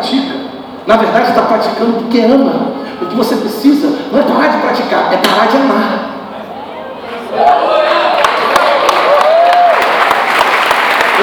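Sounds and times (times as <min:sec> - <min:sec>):
speech: 0:00.8 - 0:06.1
voices whooping and calling out: 0:06.5 - 0:10.0
crowd applauding: 0:07.4 - 0:11.2.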